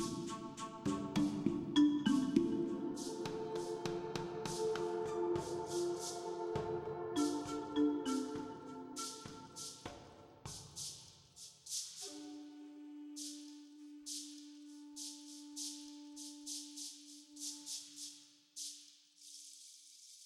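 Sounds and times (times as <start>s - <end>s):
Congo ambient music: 0.0s - 9.9s.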